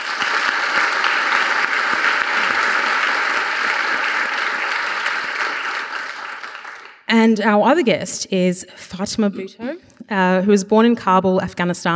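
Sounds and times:
audience at an International Women's Day event clapping to welcome a guest: 0.0s - 7.1s
speech: 7.2s - 11.9s.

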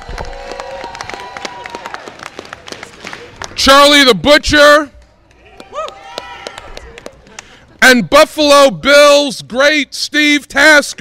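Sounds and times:
voices and whoops: 0.0s - 2.2s, 5.4s - 7.0s
crowd applauding: 0.0s - 4.0s, 5.3s - 7.7s
speech: 3.6s - 4.9s, 7.9s - 10.9s.

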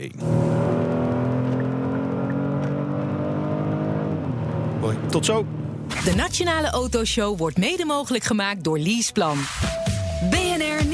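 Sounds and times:
speech: 0.0s - 0.7s, 4.8s - 10.4s
Kia Stinger GT car engine accelerating: 0.1s - 7.2s.

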